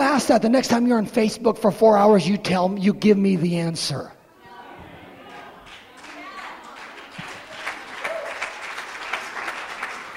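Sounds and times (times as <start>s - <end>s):
speech: 0.2s - 4.2s
audience clapping: 5.3s - 10.1s.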